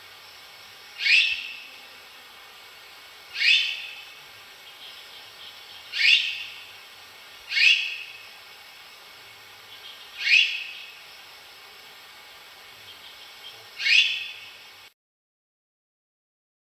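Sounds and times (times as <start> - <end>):
white winged magpie: 3.3 - 4.1, 4.7 - 6.7, 7.5 - 8.2, 9.7 - 11.0, 12.9 - 14.5.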